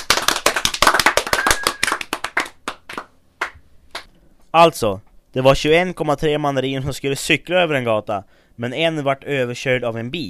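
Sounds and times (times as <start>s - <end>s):
applause: 0.0s - 4.1s
speech: 4.5s - 10.2s.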